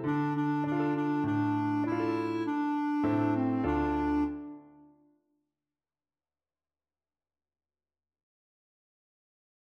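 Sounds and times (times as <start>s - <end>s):
clarinet melody: 0.0s - 5.0s.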